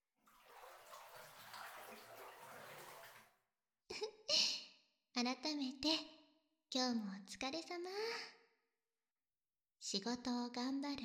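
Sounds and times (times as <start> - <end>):
water sloshing and pouring in a bathtub during a bath: 0.0 - 3.4
speech: 5.2 - 8.4, 9.8 - 11.0.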